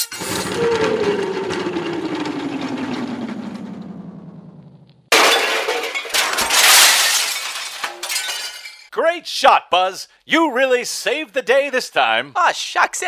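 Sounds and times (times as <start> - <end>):
transmission tower crashing down, breaking metal and shattering debris: 0.0 - 4.5, 5.1 - 8.9
descending whistling tone: 0.0 - 4.6
speech: 9.2 - 13.0.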